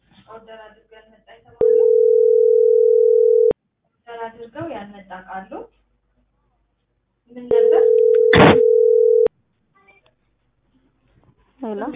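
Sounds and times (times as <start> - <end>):
speech: 0.4 - 1.6, 4.4 - 5.8, 11.7 - 11.9
telephone ringing tone before a call is answered: 1.6 - 3.6, 7.5 - 9.3.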